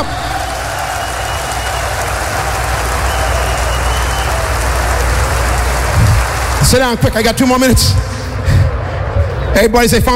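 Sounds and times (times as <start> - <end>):
audience clapping: 0.0 - 7.8
speech: 6.7 - 8.2, 9.5 - 10.1.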